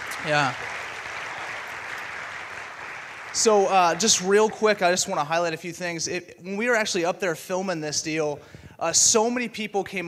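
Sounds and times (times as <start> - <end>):
crowd clapping: 0.0 - 5.6
speech: 0.2 - 0.6, 3.4 - 10.0.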